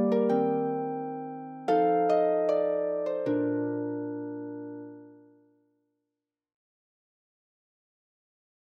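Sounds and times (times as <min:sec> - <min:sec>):
harp: 0:00.0 - 0:05.4.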